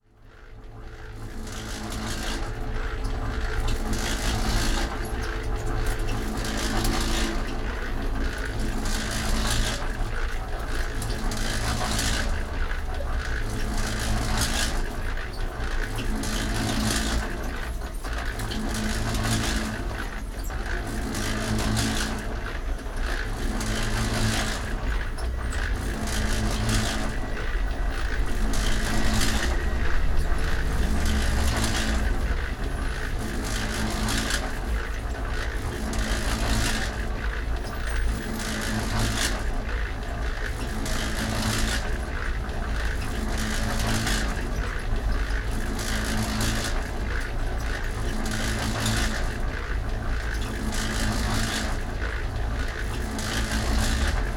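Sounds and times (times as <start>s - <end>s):
cement mixer: 0.6s - 54.3s.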